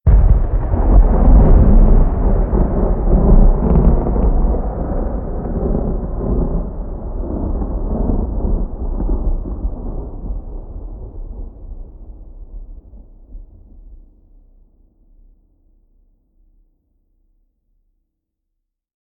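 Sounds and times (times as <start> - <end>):
thunder: 0.1 - 14.1.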